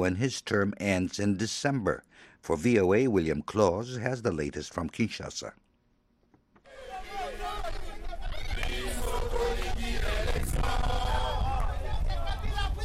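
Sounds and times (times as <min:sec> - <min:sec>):
speech: 0:00.0 - 0:05.6
protesters singing: 0:06.6 - 0:12.8.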